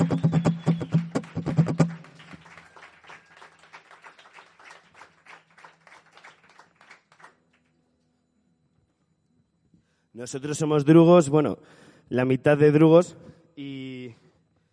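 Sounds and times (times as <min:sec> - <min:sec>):
audience applause: 0:00.0 - 0:07.6
speech: 0:10.2 - 0:13.8.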